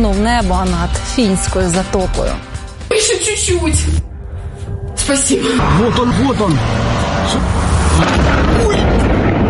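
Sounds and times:
speech: 0.1s - 4.1s, 5.1s - 9.2s
explosions from drone strike: 5.6s - 9.4s.

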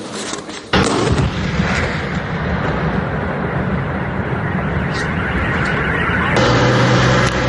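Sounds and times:
missile strike explosion: 0.7s - 7.4s.

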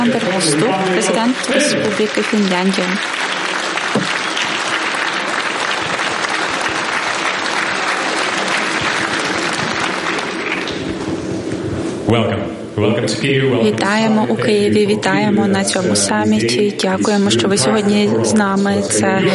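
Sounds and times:
speech: 0.0s - 3.3s, 12.1s - 19.3s
audience applause at a summit in Kyiv: 0.0s - 11.2s.

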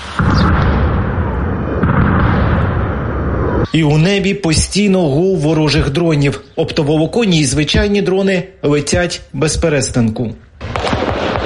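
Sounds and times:
guided aerial bombs exploding: 0.0s - 3.7s, 10.6s - 11.4s
speech: 3.7s - 10.5s.

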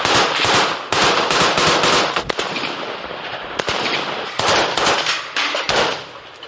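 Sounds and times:
rapid automatic gunfire shooting at a drone: 0.0s - 2.7s, 3.6s - 5.1s.

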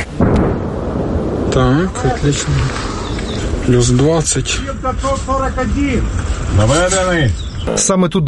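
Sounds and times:
Ukrainian artillery gun firing: 0.1s - 2.1s
speech: 1.6s - 2.9s, 3.6s - 8.2s.

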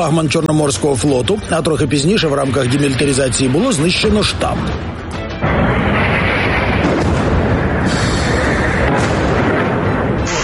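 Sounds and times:
speech: 0.0s - 5.2s
explosions from a missile strike: 5.4s - 10.4s.

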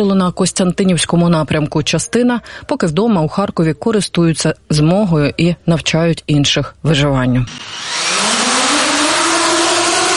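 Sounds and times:
speech: 0.0s - 8.0s
FPV drone buzzing: 7.5s - 10.1s.

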